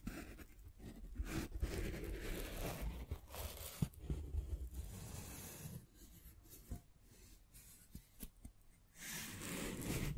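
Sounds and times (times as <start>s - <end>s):
scratching and rubbing: 0.0s - 6.8s, 9.0s - 10.1s.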